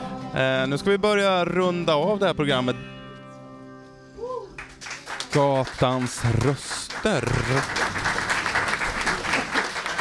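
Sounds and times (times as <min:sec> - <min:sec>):
speech: 0:00.3 - 0:02.9, 0:05.3 - 0:08.1
audience applause: 0:04.6 - 0:10.0.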